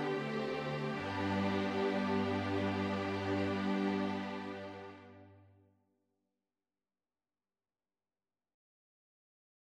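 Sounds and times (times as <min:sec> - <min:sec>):
string quartet playing: 0:00.0 - 0:05.4.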